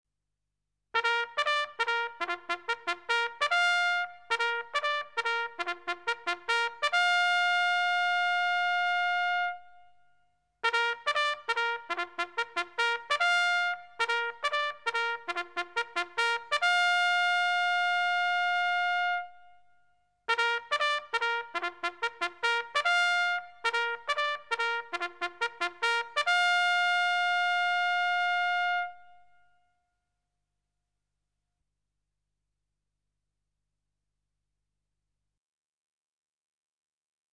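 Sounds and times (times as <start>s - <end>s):
military trumpet call: 1.0s - 9.8s, 10.6s - 19.5s, 20.3s - 29.4s.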